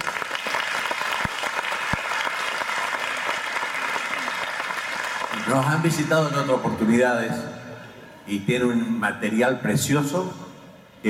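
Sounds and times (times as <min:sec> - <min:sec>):
audience applause: 0:00.0 - 0:05.9
speech: 0:05.5 - 0:07.6, 0:08.3 - 0:10.4.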